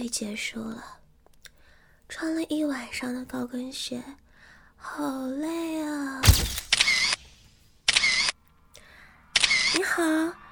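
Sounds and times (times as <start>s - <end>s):
speech: 0.0s - 1.0s, 2.1s - 4.2s, 4.8s - 6.6s, 9.7s - 10.4s
camera shutters clicking after a stage performance: 6.2s - 8.3s.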